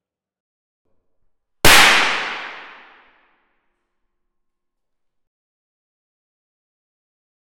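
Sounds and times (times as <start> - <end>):
thin wire exploding from a sudden 4 kV capacitor discharge: 1.7 - 3.0.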